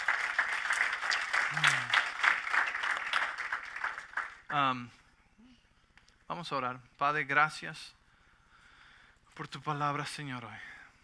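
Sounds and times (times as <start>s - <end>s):
audience applause: 0.0s - 4.6s
speech: 4.5s - 5.0s, 6.3s - 8.0s, 9.4s - 10.8s.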